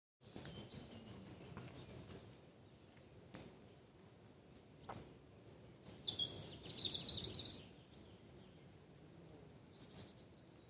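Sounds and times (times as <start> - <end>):
bird: 0.2 - 3.0, 4.8 - 10.6.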